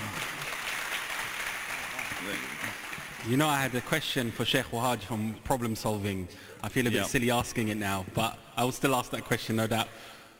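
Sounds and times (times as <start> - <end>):
audience applause: 0.0 - 3.4
speech: 2.2 - 10.2.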